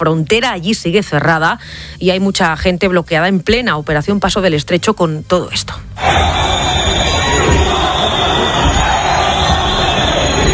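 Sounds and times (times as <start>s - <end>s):
speech: 0.0s - 6.8s
large crowd booing a politician: 6.0s - 10.5s.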